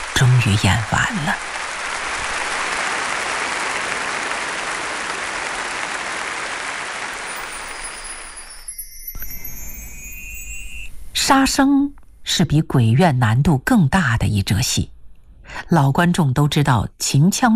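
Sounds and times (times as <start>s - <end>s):
thunderous theater applause: 0.0s - 8.4s
speech: 0.2s - 1.6s, 11.3s - 15.0s, 15.6s - 17.5s.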